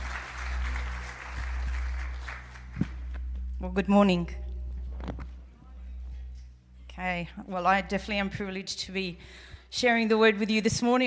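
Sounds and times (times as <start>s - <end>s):
church congregation applauding a speaker: 0.0s - 3.3s
speech: 3.6s - 4.4s, 7.0s - 11.0s.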